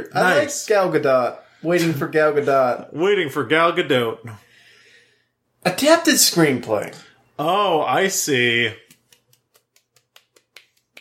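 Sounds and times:
speech: 0.0 - 4.5, 5.6 - 8.8
soft hand clapping: 8.8 - 10.9.

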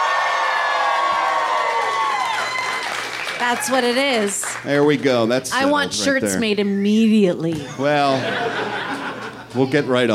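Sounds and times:
audience applause: 0.0 - 5.0
speech: 3.4 - 8.8, 9.5 - 10.1
laughter: 7.5 - 9.8.

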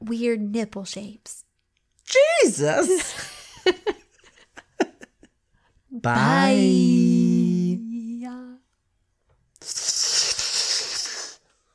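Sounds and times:
speech: 0.1 - 1.4, 2.1 - 4.0, 5.9 - 8.6
voice imitating a snake hiss: 9.6 - 11.4.

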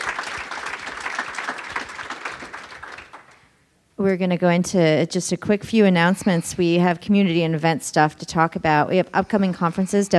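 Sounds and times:
crowd applauding: 0.0 - 3.5
speech: 4.0 - 10.1.

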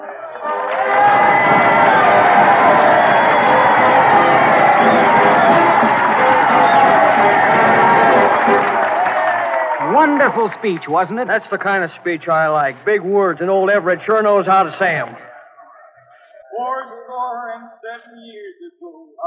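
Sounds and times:
large crowd cheering and applauding after a speech: 0.0 - 15.2
speech: 10.2 - 15.3.

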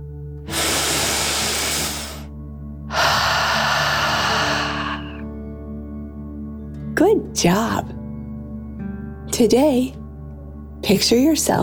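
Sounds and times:
deep breath in through nose, out through mouth: 0.5 - 2.3, 2.9 - 5.4
speech: 7.0 - 8.0, 9.4 - 10.0, 10.8 - 11.6.

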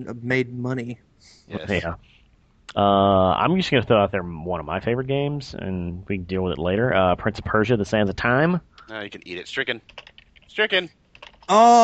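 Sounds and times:
speech: 0.0 - 11.8
person exclaiming: 1.5 - 1.9, 11.5 - 11.8
computer keyboard typing: 9.8 - 11.5.

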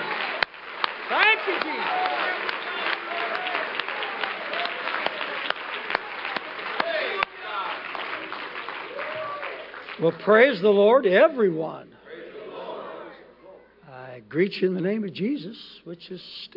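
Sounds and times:
audience clapping hands in praise: 0.0 - 11.0
speech: 1.5 - 2.5, 10.0 - 11.9, 14.3 - 16.5.

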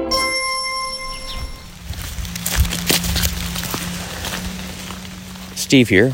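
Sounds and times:
ringing bell-like tone: 0.1 - 2.0
steady rain pattering on forest leaves: 2.4 - 6.1
speech: 5.7 - 6.1.

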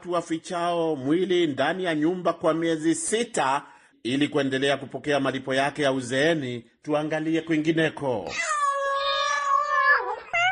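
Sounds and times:
speech: 0.0 - 8.6
cat meowing: 8.3 - 10.5.

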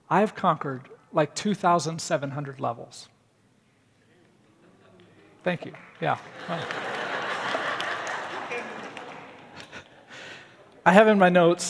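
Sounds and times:
speech: 0.1 - 3.2, 5.4 - 6.9, 10.8 - 11.6
laughter: 4.4 - 11.0
audience applause: 5.6 - 10.5.

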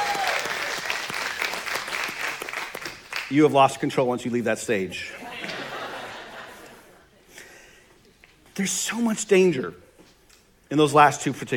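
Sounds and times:
audience round of applause: 0.0 - 3.3
speech: 3.3 - 5.2, 8.6 - 9.8, 10.7 - 11.5
laughter: 5.0 - 7.3.

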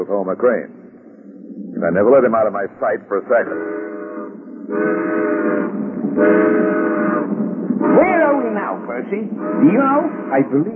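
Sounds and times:
speech: 0.0 - 0.8, 1.6 - 3.8, 4.7 - 5.4, 6.2 - 7.0, 7.9 - 10.7
passenger train running on rails: 0.0 - 10.7
multi-toned train horn blasts: 3.4 - 10.7.

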